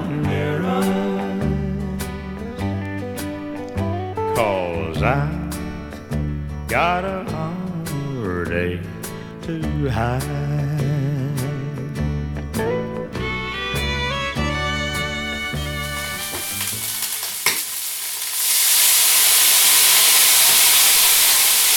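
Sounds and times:
music: 0.0s - 17.5s
speech: 4.4s - 5.4s, 6.8s - 7.6s, 8.5s - 11.0s
onions frying in a pan in Austria: 15.6s - 21.7s.

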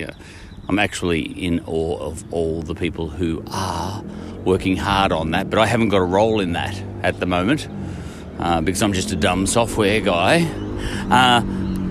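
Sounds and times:
speech: 0.0s - 11.6s
motorbike passing: 1.1s - 11.8s.

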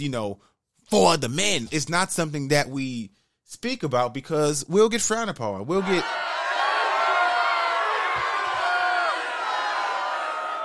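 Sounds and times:
speech: 0.0s - 6.2s
crowd booing sound effect: 5.7s - 10.6s
shouts: 5.7s - 10.6s.

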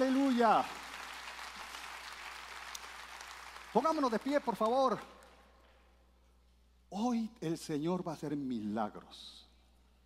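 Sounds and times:
speech: 0.0s - 0.8s, 3.7s - 5.2s, 6.9s - 9.4s
audience applauding: 0.0s - 5.0s.

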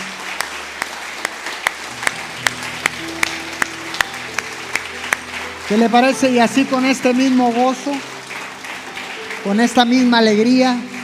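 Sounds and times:
group clapping in time: 0.0s - 11.0s
faint sustained low musical tones: 1.0s - 11.0s
speech: 5.7s - 8.1s, 9.4s - 10.9s.

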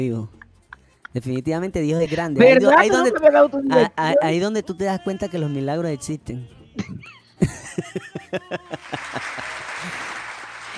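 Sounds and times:
speech: 0.0s - 0.4s, 1.1s - 10.2s
laughter: 2.0s - 5.6s, 6.8s - 10.2s
one person applauding: 8.6s - 10.7s.

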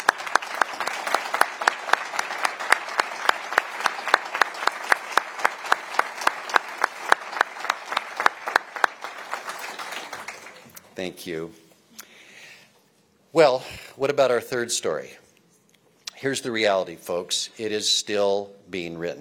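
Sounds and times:
audience applause: 0.0s - 10.8s
speech: 11.0s - 11.6s, 13.3s - 15.2s, 16.2s - 19.1s.

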